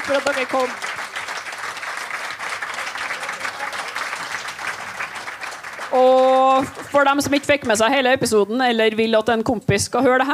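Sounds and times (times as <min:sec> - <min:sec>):
audience applause: 0:00.0 - 0:07.2
speech: 0:00.1 - 0:01.0, 0:05.9 - 0:10.3.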